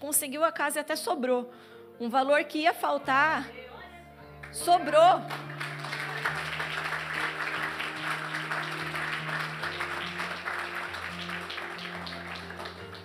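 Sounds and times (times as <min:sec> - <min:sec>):
speech: 0:00.0 - 0:03.6, 0:04.5 - 0:05.6
audience applause: 0:05.3 - 0:13.0.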